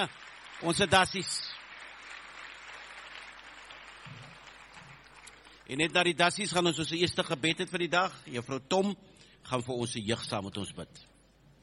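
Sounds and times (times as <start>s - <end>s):
speech: 0.0s - 1.5s, 5.7s - 11.1s
audience applause: 0.0s - 6.0s.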